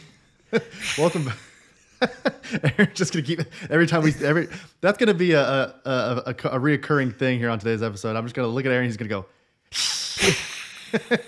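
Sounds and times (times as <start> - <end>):
speech: 0.5 - 11.2
person hissing like a snake: 0.7 - 1.8, 9.7 - 11.2.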